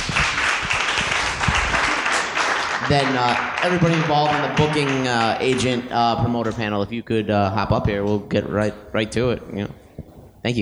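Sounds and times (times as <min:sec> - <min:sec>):
audience applause: 0:00.0 - 0:05.9
speech: 0:02.9 - 0:09.8, 0:10.4 - 0:10.6.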